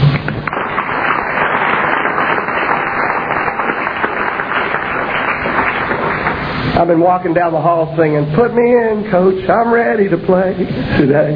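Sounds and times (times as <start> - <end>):
crowd applauding: 0.0 - 6.8
speech: 6.8 - 11.3.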